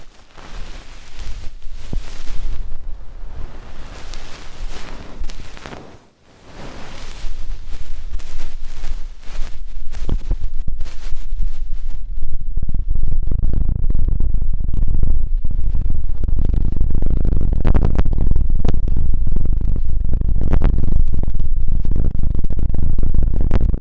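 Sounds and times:
scratchy rustling in deep ear cleaning: 0:00.0 - 0:12.1
sharp clicks and pops: 0:00.0 - 0:23.7
steady rumbling: 0:00.0 - 0:23.7.

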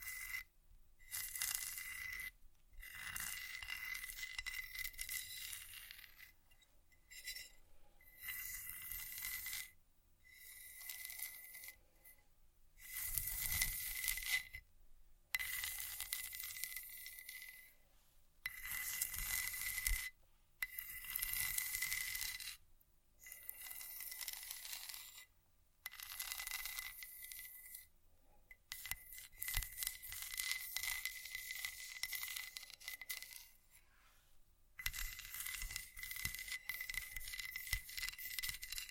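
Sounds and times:
scratching and scraping: 0:00.0 - 0:00.5, 0:01.1 - 0:09.8, 0:10.4 - 0:14.7, 0:15.3 - 0:22.6, 0:23.2 - 0:27.9, 0:28.5 - 0:34.2, 0:34.8 - 0:38.8.

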